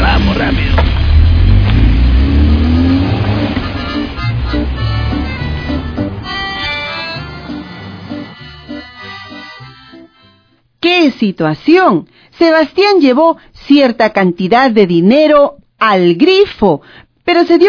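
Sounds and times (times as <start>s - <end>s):
minibus van engine revving and driving away: 0.0s - 9.9s
speech: 11.2s - 17.6s.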